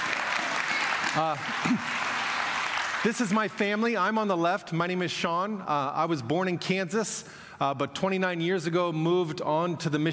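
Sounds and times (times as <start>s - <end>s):
audience applause for a worship team at a church service: 0.0s - 3.8s
speech: 1.2s - 2.1s, 3.0s - 10.1s.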